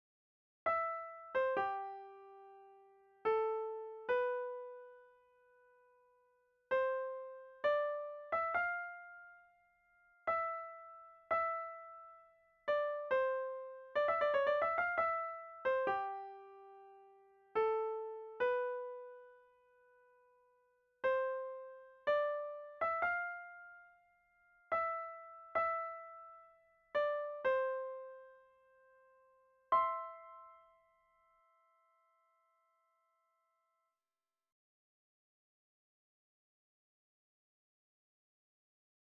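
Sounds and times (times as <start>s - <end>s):
piano prelude: 0.8s - 5.2s, 6.8s - 19.6s, 21.1s - 28.6s, 29.7s - 31.3s.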